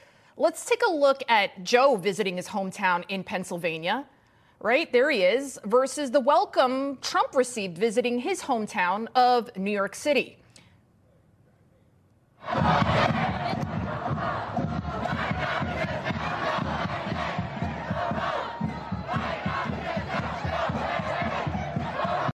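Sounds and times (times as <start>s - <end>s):
speech: 0.4s - 10.4s
large crowd chanting a rhythmic political slogan: 12.4s - 22.3s.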